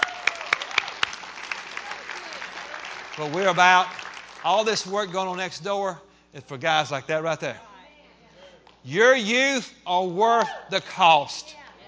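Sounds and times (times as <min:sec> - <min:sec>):
audience clapping hands: 0:00.0 - 0:05.4
speech: 0:03.2 - 0:07.7, 0:08.8 - 0:11.6.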